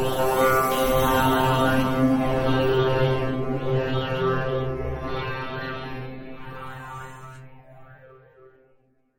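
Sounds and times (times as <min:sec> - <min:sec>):
scary soundscape: 0:00.1 - 0:07.7.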